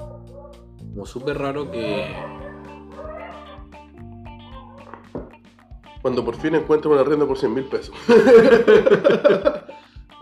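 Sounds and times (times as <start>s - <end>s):
dogs barking: 0.0s - 5.4s
speech: 1.0s - 2.4s, 6.0s - 9.6s
laughter: 8.0s - 9.8s.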